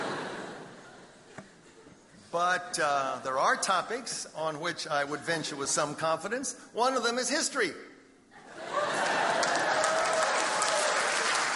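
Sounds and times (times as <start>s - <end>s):
speech: 2.3s - 7.9s
audience applause: 8.6s - 11.5s.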